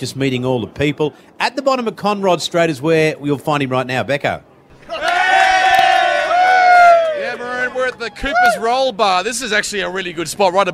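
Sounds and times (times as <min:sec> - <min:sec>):
speech: 0:00.0 - 0:05.0, 0:08.0 - 0:10.7
crowd cheering at motor race: 0:04.7 - 0:08.9.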